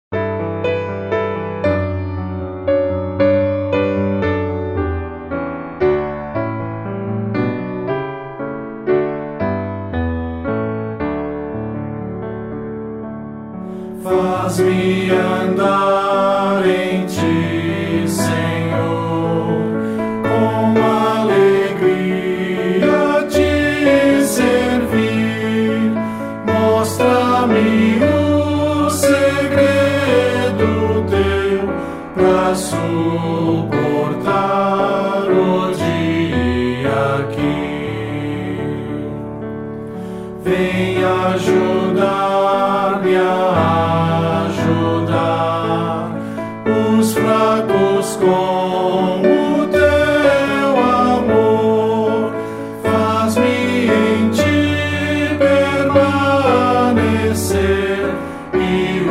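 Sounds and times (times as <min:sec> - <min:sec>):
piano: 0:00.0 - 0:59.0
person singing: 0:13.8 - 0:39.2, 0:40.4 - 0:59.0.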